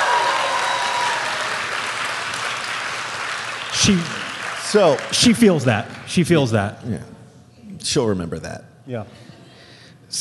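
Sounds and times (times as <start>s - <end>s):
round of audience applause: 0.0s - 6.2s
speech: 3.9s - 7.2s, 7.8s - 9.3s.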